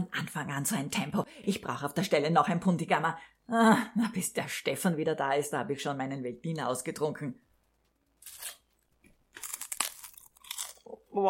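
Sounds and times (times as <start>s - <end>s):
speech: 0.1s - 7.5s
rice cakes being bitten and chewed: 8.2s - 10.9s.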